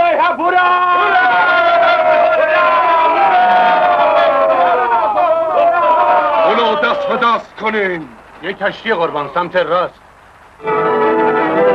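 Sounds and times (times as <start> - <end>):
ship's crew of men cheering together: 0.0 - 7.5
speech: 7.2 - 10.0, 10.6 - 10.9.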